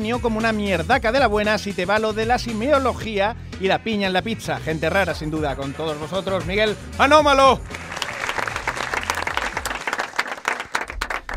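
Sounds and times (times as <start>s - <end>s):
speech: 0.0s - 7.8s
recorded studio audience applause: 7.7s - 11.3s.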